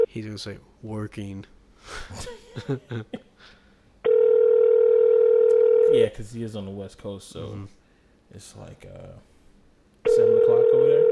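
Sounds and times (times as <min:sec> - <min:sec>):
speech: 0:00.2 - 0:03.6, 0:05.9 - 0:09.3
telephone dial tone of outgoing call: 0:04.1 - 0:05.9, 0:10.1 - 0:11.1.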